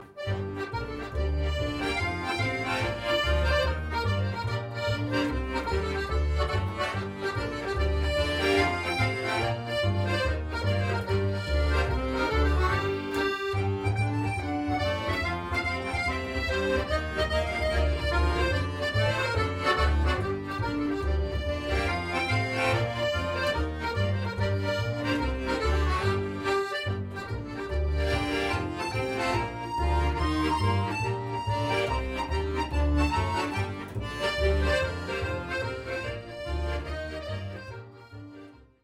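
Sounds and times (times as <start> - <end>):
jig tune: 0.0 - 38.8.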